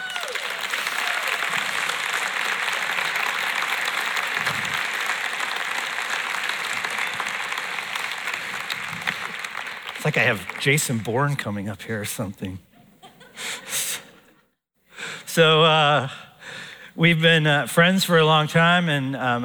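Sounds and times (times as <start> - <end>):
audience applause welcoming guests onto a stage: 0.0 - 11.5
speech: 10.1 - 12.7, 15.4 - 16.3, 17.0 - 19.4.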